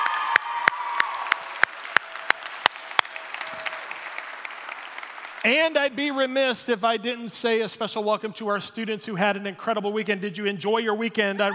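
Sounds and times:
congregation clapping for a worship team: 0.0s - 6.3s
speech: 5.4s - 11.5s.

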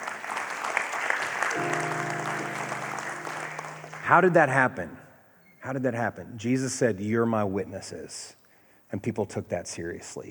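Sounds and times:
audience applause: 0.0s - 4.4s
sustained organ or keyboard chord: 1.6s - 4.9s
speech: 4.1s - 5.0s, 5.6s - 10.2s.

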